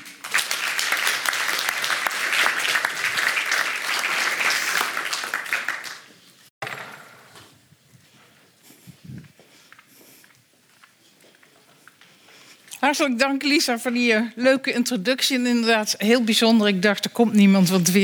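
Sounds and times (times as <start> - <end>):
audience applause: 0.0 - 6.2
speech: 12.9 - 18.0.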